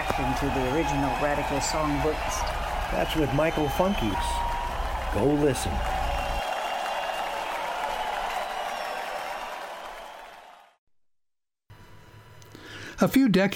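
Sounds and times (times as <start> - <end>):
crowd applauding and cheering: 0.0 - 10.8
speech: 0.2 - 4.4, 5.2 - 6.0, 13.0 - 13.5.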